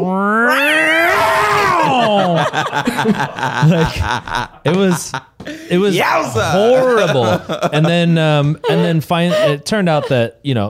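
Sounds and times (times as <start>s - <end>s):
speech: 0.0s - 0.6s, 2.5s - 10.6s
person's voice imitating a cat's horrifying scream: 0.0s - 2.1s
person laughing: 1.4s - 10.3s.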